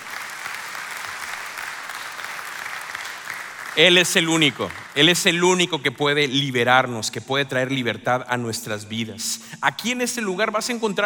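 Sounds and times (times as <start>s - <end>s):
audience applause: 0.0s - 5.7s
speech: 3.8s - 11.0s.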